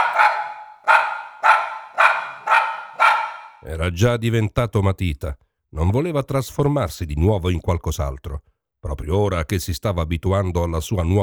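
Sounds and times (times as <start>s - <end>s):
small poodle barking: 0.0s - 3.6s
speech: 3.6s - 11.2s.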